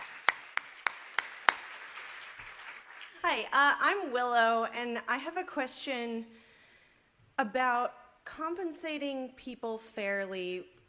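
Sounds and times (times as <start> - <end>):
sharp hand claps: 0.0 - 3.2
speech: 3.3 - 6.4, 7.4 - 10.8.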